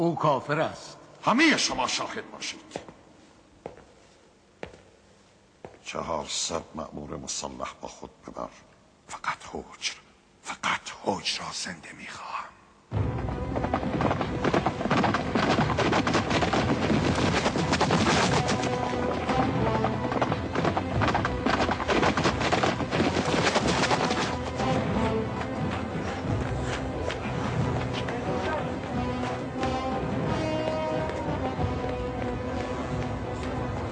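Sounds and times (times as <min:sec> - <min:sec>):
speech: 0:00.0 - 0:03.0, 0:05.9 - 0:14.4
galloping hoofbeats of a hundred armed horsemen attacking around a mosque: 0:13.0 - 0:33.9.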